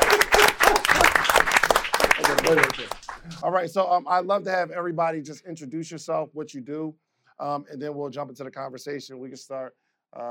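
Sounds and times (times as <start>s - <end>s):
audience clapping: 0.0s - 3.4s
speech: 2.5s - 10.2s.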